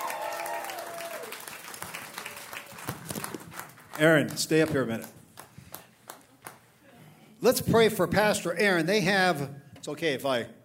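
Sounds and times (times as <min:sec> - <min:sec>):
church audience applause for a guest speaker: 0:00.0 - 0:06.6
speech: 0:04.0 - 0:05.2, 0:07.4 - 0:10.6.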